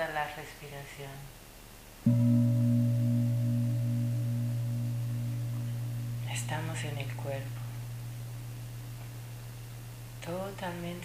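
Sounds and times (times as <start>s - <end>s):
speech: 0.2s - 1.4s, 6.4s - 7.6s, 10.3s - 11.0s
gong strike: 2.1s - 10.3s.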